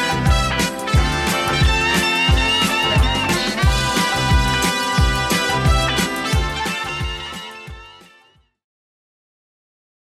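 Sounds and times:
1960s-style drum beat at 178 BPM: 0:00.0 - 0:07.9.

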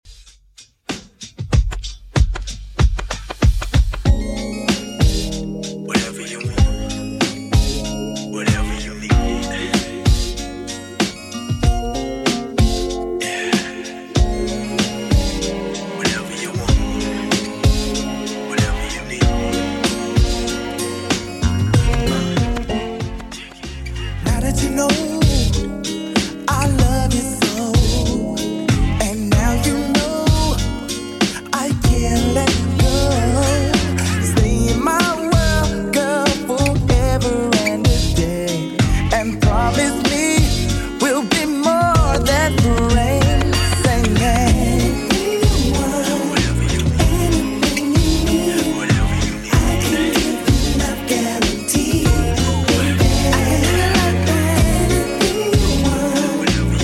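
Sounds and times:
95bpm beat: 0:00.1 - 0:56.8.

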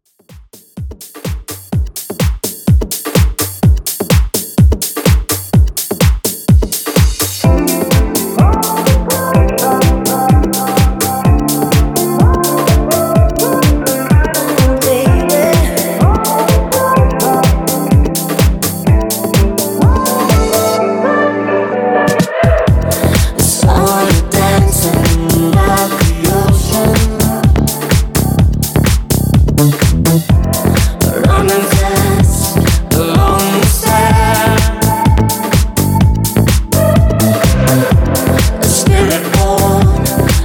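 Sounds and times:
126 BPM club drum loop: 0:00.0 - 0:20.8, 0:22.1 - 0:40.4.

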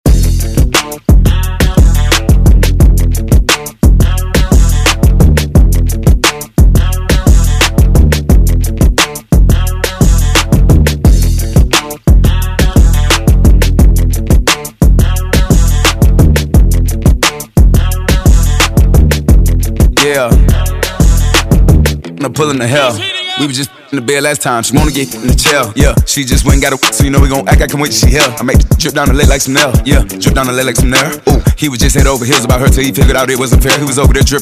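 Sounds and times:
Top 40 pop music track: 0:00.0 - 0:34.4.

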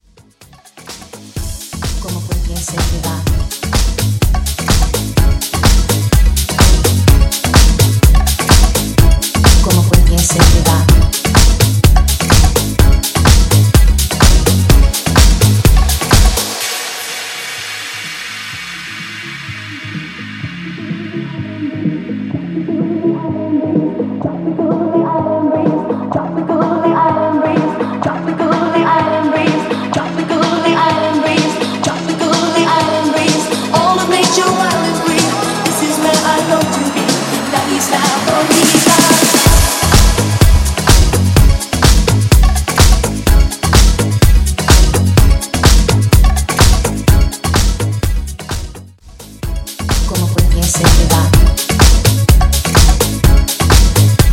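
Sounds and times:
funky house music: 0:00.0 - 0:54.3.

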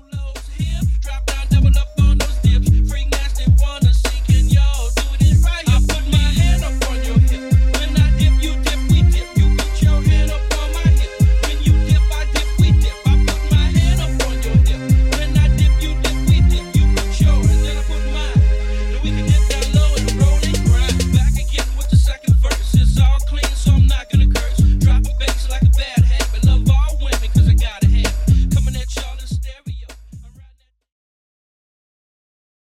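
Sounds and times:
90s-style 130 bpm drum beat: 0:00.0 - 0:18.5, 0:19.3 - 0:30.4.

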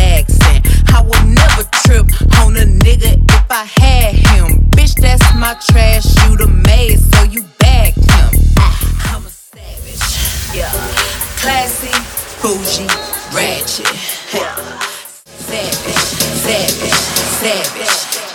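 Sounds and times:
bass house music: 0:00.0 - 0:18.3.

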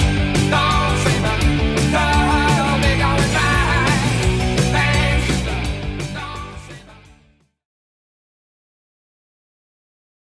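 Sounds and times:
80s rock drums: 0:00.0 - 0:07.6.

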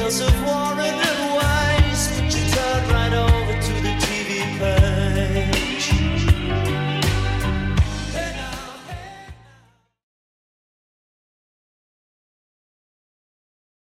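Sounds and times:
80s drum machine beat at 80 bpm: 0:00.0 - 0:09.5.

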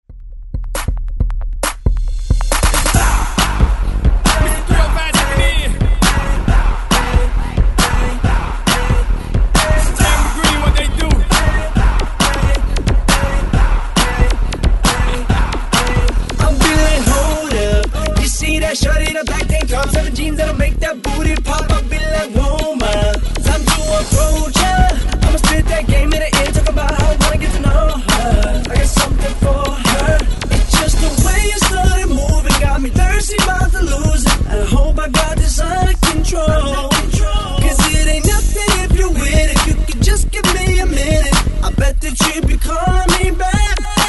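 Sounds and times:
hype drum beat: 0:00.1 - 0:44.0.

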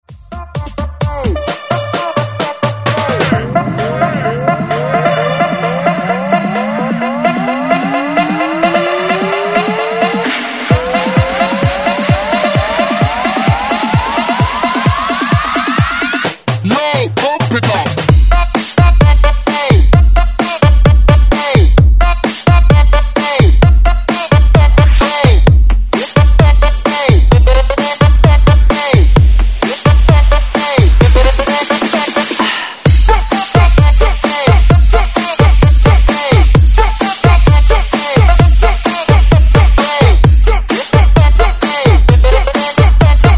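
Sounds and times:
130 BPM breaks mix: 0:00.0 - 0:43.3.

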